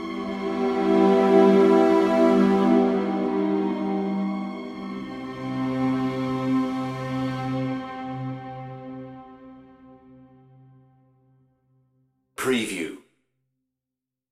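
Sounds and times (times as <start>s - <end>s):
dark string music: 0.0s - 11.0s.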